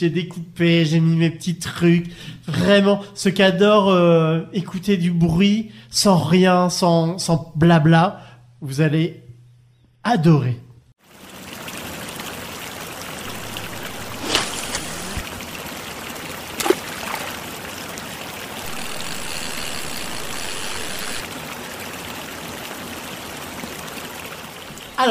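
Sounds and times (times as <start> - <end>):
speech: 0.0 - 9.2, 10.0 - 10.6
river flowing: 11.1 - 25.0
fishing line cast into water: 13.4 - 15.2, 16.6 - 17.3.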